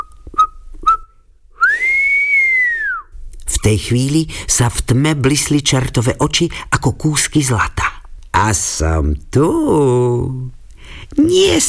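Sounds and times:
person whistling timidly: 0.0s - 3.1s
speech: 3.6s - 7.8s, 8.4s - 11.6s.

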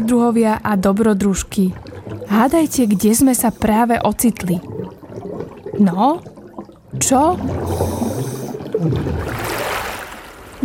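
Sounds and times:
speech: 0.0s - 4.7s, 5.8s - 6.3s, 6.9s - 9.7s
underwater ambience: 0.0s - 10.6s.

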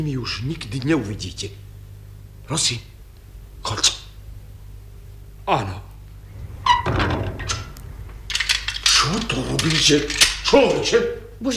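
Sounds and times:
speech: 0.0s - 1.7s, 2.5s - 2.9s, 3.6s - 4.0s, 5.5s - 5.9s, 9.8s - 11.5s
house door shutting with a thunk: 6.3s - 8.3s
house door squeaking: 6.3s - 10.5s
door being locked with knocks and clicks: 6.7s - 10.8s.

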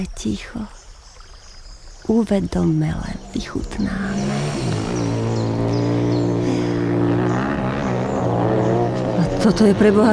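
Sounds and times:
speech: 0.0s - 0.8s, 2.0s - 4.8s, 9.4s - 10.1s
motorcycles roaring past: 3.2s - 10.1s.

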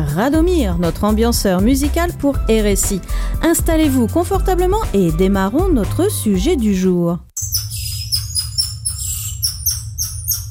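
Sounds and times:
speech: 0.2s - 7.3s
lion tamarin shrill whistling call: 7.4s - 10.5s.

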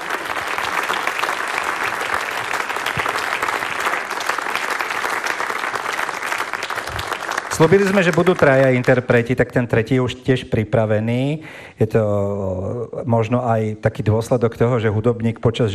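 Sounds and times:
applause for the award winners: 0.0s - 9.3s
speech: 7.6s - 15.7s.

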